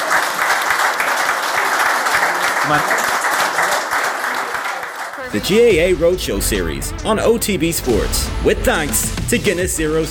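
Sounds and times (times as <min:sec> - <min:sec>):
applause: 0:00.0 - 0:05.3
speech: 0:02.7 - 0:03.2, 0:05.3 - 0:10.1.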